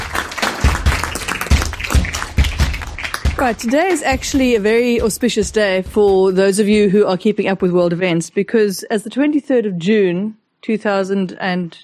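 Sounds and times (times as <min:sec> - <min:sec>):
audience applause: 0:00.0 - 0:04.3
speech: 0:03.4 - 0:11.8.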